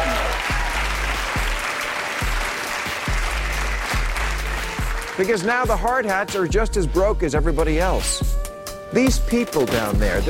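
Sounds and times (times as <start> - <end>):
large crowd cheering and clapping: 0.0 - 5.8
speech: 5.2 - 10.2.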